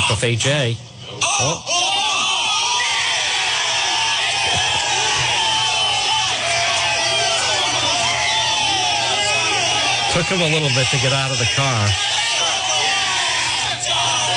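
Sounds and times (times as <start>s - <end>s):
speech: 0.1s - 1.9s, 10.2s - 12.2s
several men yelling and shouting on a played clip: 1.2s - 14.3s.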